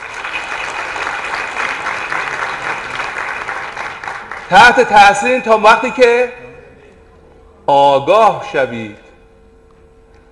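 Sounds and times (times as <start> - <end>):
audience applause: 0.0 - 4.6
speech: 4.5 - 6.4, 7.7 - 9.0.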